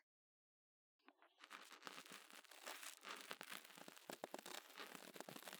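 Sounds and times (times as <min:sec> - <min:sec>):
ear cleaning on both ears: 0:01.4 - 0:05.5.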